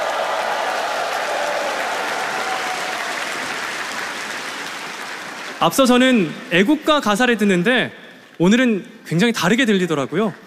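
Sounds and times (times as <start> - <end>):
audience applause: 0.0 - 6.1
speech: 5.6 - 10.4.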